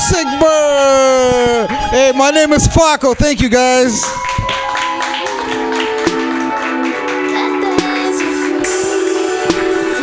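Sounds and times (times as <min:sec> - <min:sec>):
speech: 0:00.1 - 0:04.8
hand clapping: 0:04.0 - 0:10.0.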